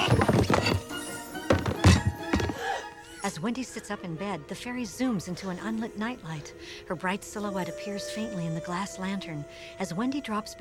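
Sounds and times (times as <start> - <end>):
row of hardcover books toppling over: 0.0 - 2.7
speech: 3.4 - 10.5.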